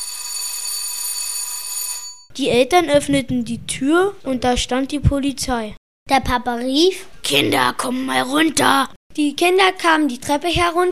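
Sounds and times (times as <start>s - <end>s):
doorbell ringing: 0.0s - 2.3s
speech: 2.4s - 10.9s.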